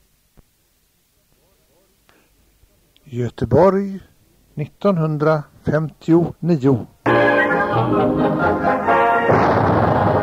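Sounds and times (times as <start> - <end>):
speech: 3.1 - 7.0, 7.7 - 9.8
steady tonal sound: 7.1 - 10.2
construction blast from explosive charges: 9.3 - 10.2.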